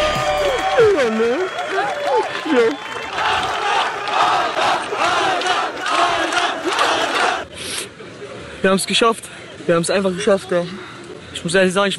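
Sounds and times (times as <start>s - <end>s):
fans cheering and applauding at the finish line in Los Angeles: 0.0s - 7.5s
speech: 1.0s - 3.6s, 8.6s - 11.9s.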